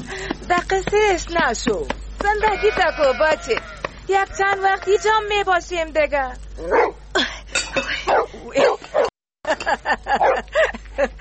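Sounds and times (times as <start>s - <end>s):
speech: 0.5s - 7.0s, 9.5s - 11.2s
dog barking: 6.6s - 7.0s, 8.1s - 9.1s, 10.2s - 10.5s.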